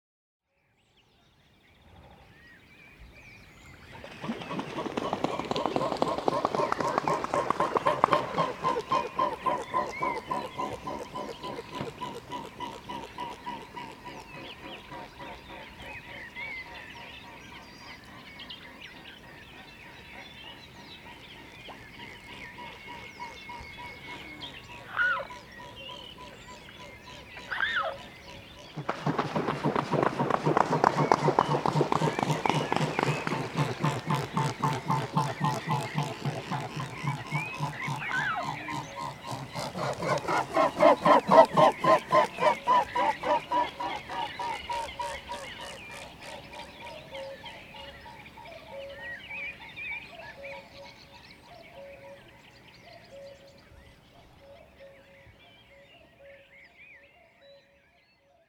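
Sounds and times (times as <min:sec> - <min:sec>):
swans: 0:03.9 - 0:17.6, 0:21.0 - 0:49.0.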